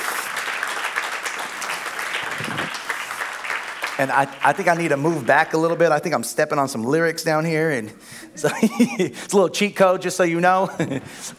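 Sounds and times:
audience round of applause: 0.0s - 6.0s
speech: 4.0s - 11.3s
laughter: 8.2s - 9.3s, 10.5s - 11.3s.

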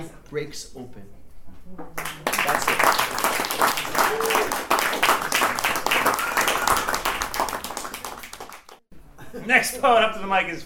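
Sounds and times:
speech: 0.0s - 2.8s, 3.5s - 5.1s, 9.4s - 10.6s
audience applause after poem: 2.0s - 8.8s.

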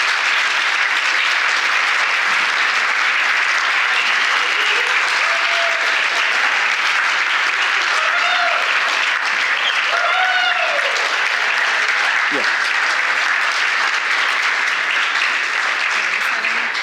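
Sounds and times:
audience applauding: 0.0s - 16.8s
voices cheering: 3.8s - 13.1s.

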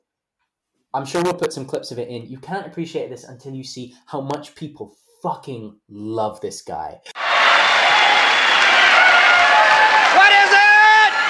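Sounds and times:
speech: 0.9s - 7.2s
crowd applauding: 7.2s - 11.2s.

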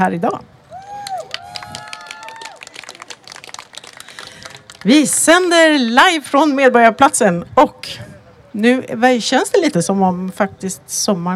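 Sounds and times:
speech: 0.0s - 0.5s, 4.8s - 11.3s
cheers: 0.7s - 4.5s
audience applause: 1.0s - 5.0s.

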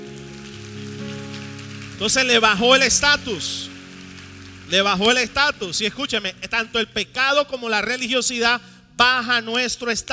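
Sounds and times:
audience applause: 0.0s - 6.0s
speech: 2.0s - 3.7s, 4.7s - 10.1s.

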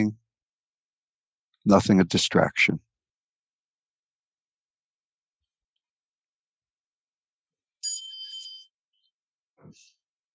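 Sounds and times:
speech: 0.0s - 0.2s, 1.6s - 2.9s
meditation bell ringing: 7.8s - 8.8s.

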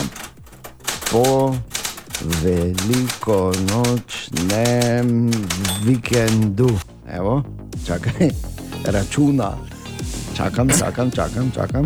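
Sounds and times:
old typewriter keys clicking: 0.0s - 6.8s
speech: 1.1s - 9.7s, 10.4s - 11.8s.

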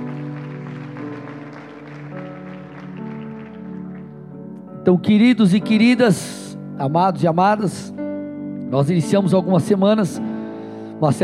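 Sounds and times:
crowd applause: 0.0s - 4.5s
speech: 4.9s - 8.0s, 8.7s - 10.3s, 11.0s - 11.2s.

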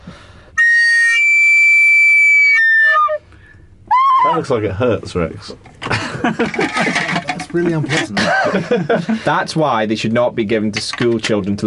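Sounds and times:
recorder played badly with shrill squawky notes: 0.6s - 3.2s
speech: 4.4s - 11.6s
laughter: 5.8s - 9.5s.

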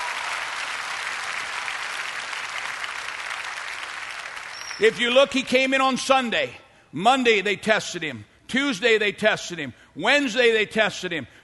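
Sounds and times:
audience applause: 0.0s - 4.8s
speech: 4.8s - 11.4s.

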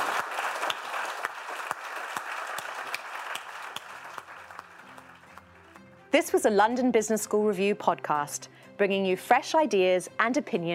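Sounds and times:
large audience applause: 0.0s - 5.7s
speech: 6.2s - 10.7s.

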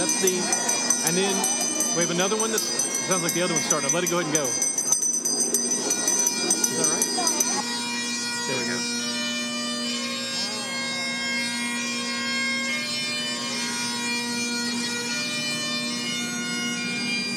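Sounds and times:
bagpipes playing a slow tune: 0.0s - 17.3s
speech: 0.2s - 4.7s, 6.8s - 7.0s.

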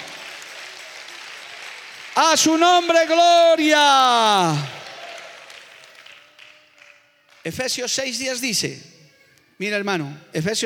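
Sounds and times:
audience applause: 0.0s - 3.3s, 4.2s - 7.5s
speech: 2.2s - 4.8s, 7.4s - 9.0s, 9.6s - 10.6s.

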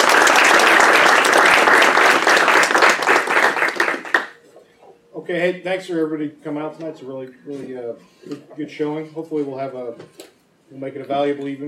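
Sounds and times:
applause welcoming the Carlisle Scholars at a Notre Dame event: 0.0s - 4.4s
speech: 5.3s - 11.6s.

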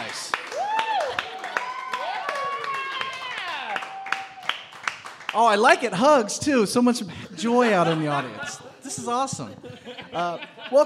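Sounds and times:
audience clapping: 0.0s - 6.2s
speech: 5.4s - 10.8s
laughter: 7.2s - 10.8s.

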